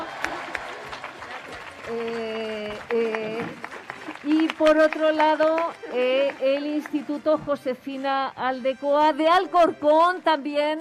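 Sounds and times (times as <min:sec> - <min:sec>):
sustained voiced cheering: 0:00.0 - 0:04.6
audience clapping: 0:00.0 - 0:07.4
speech: 0:01.9 - 0:02.3, 0:04.6 - 0:10.7.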